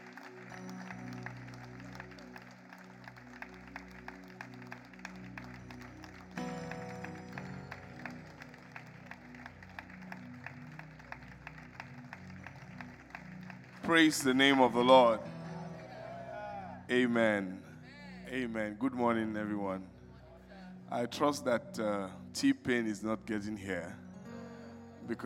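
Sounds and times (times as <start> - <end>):
audience clapping: 0.0 - 15.4
sustained keyboard-like music: 0.0 - 21.1, 22.2 - 25.2
speech: 13.9 - 15.3, 16.9 - 17.6, 18.3 - 20.0, 20.9 - 24.0, 25.1 - 25.2.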